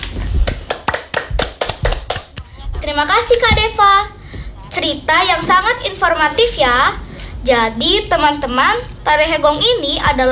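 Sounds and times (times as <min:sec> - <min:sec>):
scattered hand claps for a presenter: 0:00.0 - 0:04.4
low murmur: 0:00.0 - 0:10.2
speech: 0:02.9 - 0:04.2, 0:04.8 - 0:10.2.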